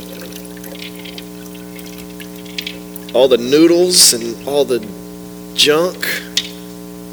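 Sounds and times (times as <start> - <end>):
liquid poured into a filter over a cup: 0.0 - 4.7
low constant hum: 0.0 - 7.1
speech: 3.1 - 5.0, 5.6 - 6.5.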